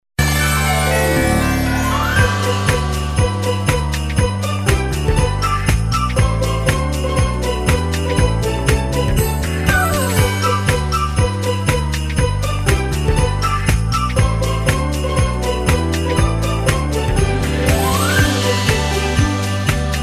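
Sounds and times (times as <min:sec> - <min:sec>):
lively happy Christmas song: 0:00.2 - 0:20.0.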